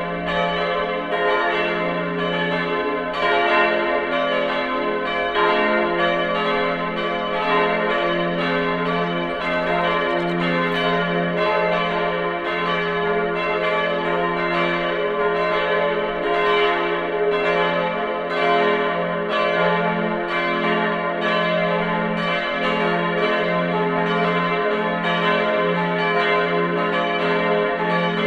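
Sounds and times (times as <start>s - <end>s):
multi-voice peal of church bells: 0.0s - 28.2s.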